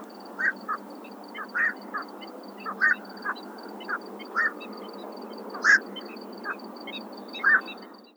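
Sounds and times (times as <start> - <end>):
Squacco heron Ardeola ralloides calling: 0.0 - 4.6.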